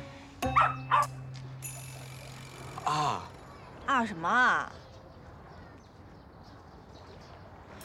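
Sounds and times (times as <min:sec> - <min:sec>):
dog barking: 0:00.5 - 0:01.1
speech: 0:04.0 - 0:04.8.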